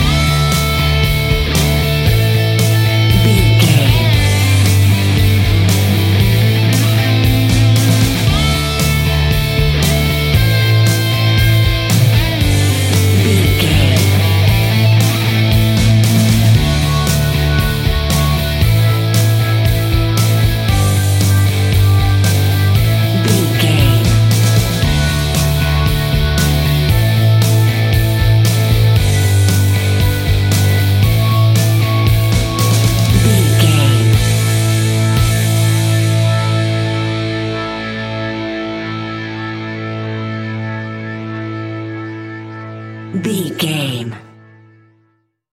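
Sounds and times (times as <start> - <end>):
old classic rock music: 0.0 - 44.1.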